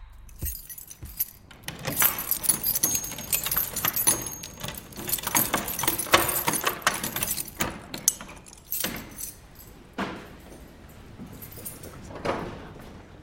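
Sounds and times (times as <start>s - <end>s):
keys rattling: 0.3s - 12.8s
heavy cathedral door latch banging: 0.8s - 10.6s.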